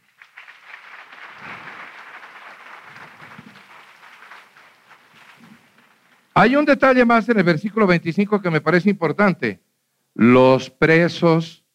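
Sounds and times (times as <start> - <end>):
audience applause: 0.0 - 6.4
speech: 6.4 - 9.6, 10.2 - 11.6.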